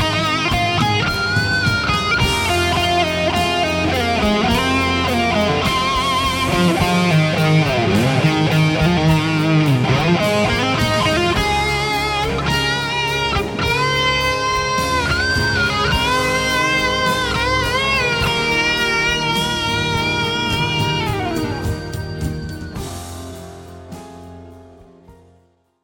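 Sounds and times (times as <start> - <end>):
electric guitar solo through fuzz pedal: 0.0 - 23.4.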